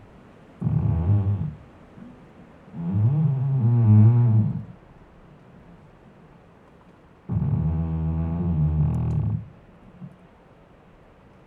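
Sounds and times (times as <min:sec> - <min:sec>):
creaking tree groaning squeaks: 0:00.6 - 0:01.6, 0:02.8 - 0:04.8, 0:07.3 - 0:09.6.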